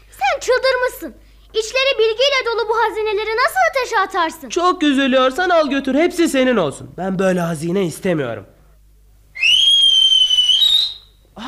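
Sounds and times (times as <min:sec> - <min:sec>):
speech: 0:00.4 - 0:08.5
human whistling calling from the garden: 0:09.4 - 0:11.2.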